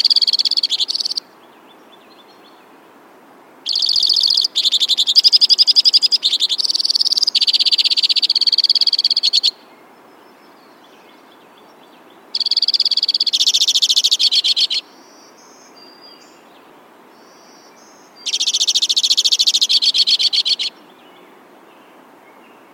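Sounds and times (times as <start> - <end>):
White-winged crossbill trilling: 0.0 - 1.2, 3.7 - 9.6, 12.4 - 14.8, 18.2 - 20.7.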